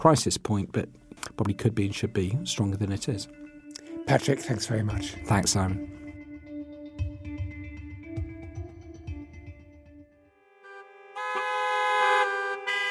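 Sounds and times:
speech: 0.0s - 3.4s, 4.1s - 6.0s
car horns honking in a traffic jam: 10.6s - 12.9s.

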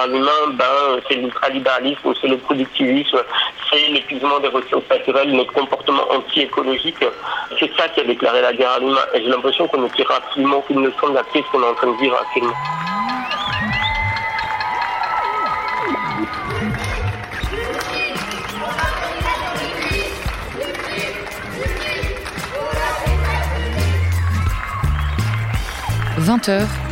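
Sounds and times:
speech: 0.0s - 13.0s, 26.3s - 26.8s
applause and cheering from windows: 9.0s - 26.9s
whistles: 12.3s - 16.3s, 23.8s - 26.0s.

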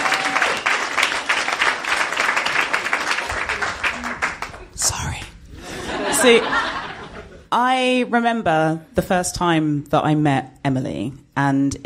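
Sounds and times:
audience applause: 0.0s - 4.7s
laughter: 5.6s - 7.5s
speech: 6.2s - 6.7s, 7.5s - 11.8s.

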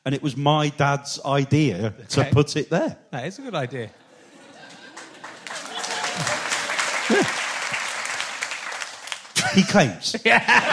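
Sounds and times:
speech: 0.0s - 4.0s, 7.1s - 7.4s, 9.4s - 10.7s
laughter: 3.6s - 7.9s, 9.4s - 10.7s
audience applause: 4.5s - 9.8s.

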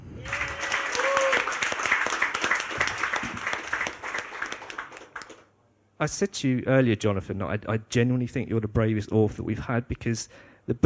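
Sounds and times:
audience applause: 0.1s - 5.5s
whistle or cheer: 0.2s - 1.6s
speech: 6.0s - 10.8s.

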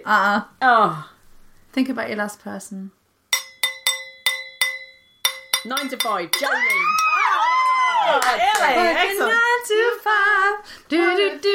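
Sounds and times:
speech: 0.0s - 1.1s, 1.8s - 3.0s, 5.6s - 7.0s, 8.1s - 11.5s
cheese knife tapping a wine glass: 3.4s - 7.0s.

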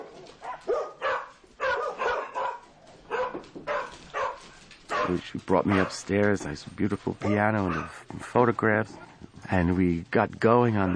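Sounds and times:
dogs barking: 0.0s - 8.1s, 10.5s - 10.9s
speech: 5.0s - 10.9s.

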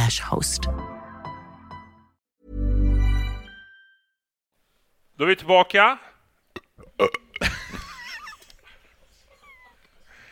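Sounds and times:
speech: 0.1s - 0.8s, 5.2s - 6.1s, 7.0s - 7.6s
burp: 6.6s - 7.5s.

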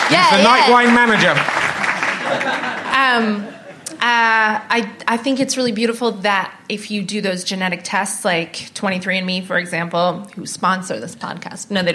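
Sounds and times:
audience applause: 0.0s - 3.2s
speech: 0.1s - 1.6s, 2.3s - 11.9s
laughter: 0.1s - 4.1s.

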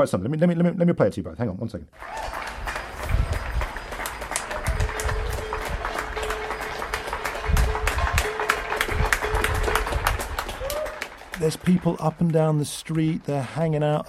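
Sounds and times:
speech: 0.0s - 2.5s, 11.4s - 14.0s
many people clapping outdoors: 2.0s - 13.2s.

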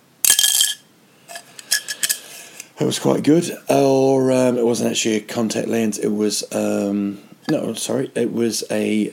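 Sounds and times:
pin dropping into an empty glass: 0.2s - 0.8s
speech: 2.8s - 9.1s.

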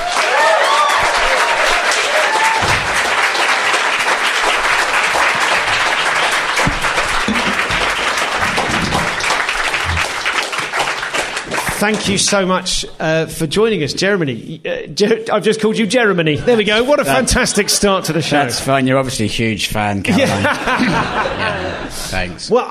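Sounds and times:
warm audience applause: 0.0s - 12.4s
laughter: 7.2s - 8.4s, 16.4s - 18.7s, 20.0s - 22.4s
speech: 11.8s - 22.6s.

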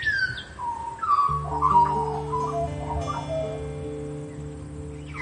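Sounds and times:
Australian magpie singing: 0.2s - 3.8s
low droning tone: 1.3s - 5.2s.

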